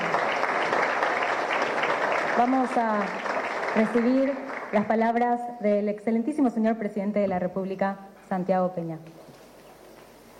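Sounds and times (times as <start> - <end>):
audience applause: 0.0 - 5.1
speech: 2.4 - 9.2.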